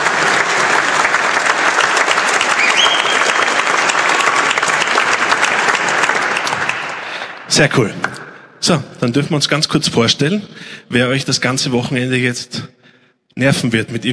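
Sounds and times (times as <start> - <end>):
crowd clapping: 0.0 - 7.6
whistle-like tone: 2.6 - 3.4
speech: 7.6 - 12.8, 13.4 - 14.1.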